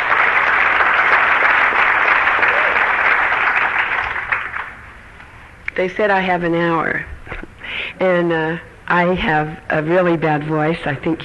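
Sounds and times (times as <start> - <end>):
audience applause at a community event in Utah: 0.0 - 4.8
speech: 5.8 - 7.2, 7.9 - 11.2.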